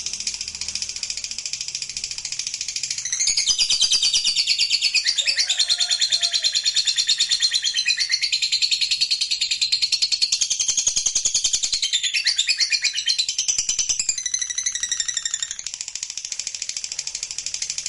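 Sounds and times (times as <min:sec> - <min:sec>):
lovebird singing high shrill notes: 0:01.8 - 0:15.7.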